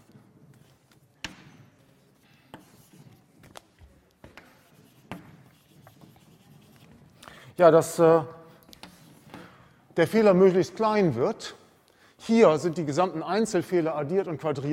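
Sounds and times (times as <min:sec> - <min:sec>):
pen strokes on a writing surface during a maths lecture: 0:02.1 - 0:03.3, 0:04.4 - 0:07.2
speech: 0:07.6 - 0:08.4, 0:10.0 - 0:11.6, 0:12.3 - 0:14.7.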